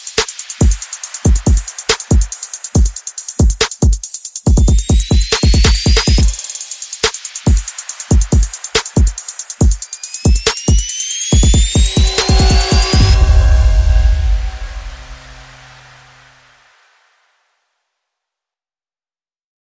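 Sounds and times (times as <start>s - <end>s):
percussion: 0.0s - 16.8s
sound effects: 9.9s - 16.8s.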